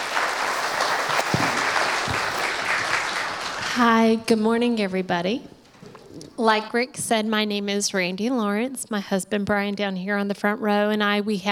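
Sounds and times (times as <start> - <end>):
audience at a church ministry gathering applauding: 0.0 - 3.9
speech: 3.8 - 5.5, 6.4 - 11.5.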